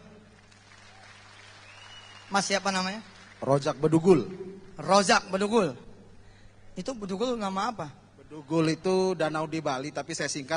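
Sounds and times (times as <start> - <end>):
audience applause: 0.0 - 4.0
speech: 2.3 - 5.8, 6.8 - 10.5.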